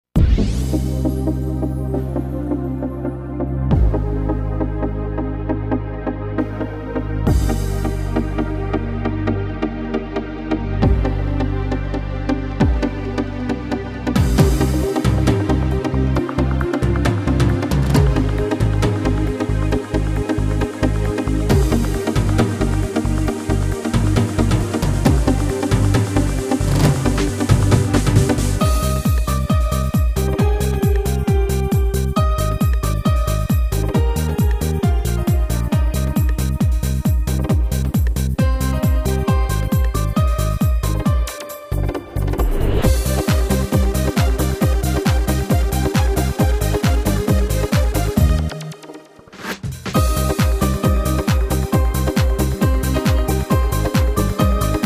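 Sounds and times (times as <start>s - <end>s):
Tyros Style Pro keyboard dance music: 0.1s - 54.8s.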